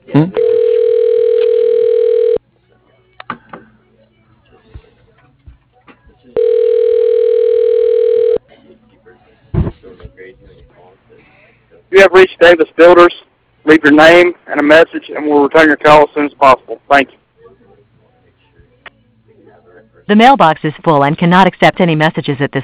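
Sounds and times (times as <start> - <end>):
faint noise: 0.0 - 22.6
telephone beeps: 0.4 - 2.4, 6.4 - 8.4
speech: 12.0 - 13.2, 13.8 - 17.2, 20.0 - 22.6.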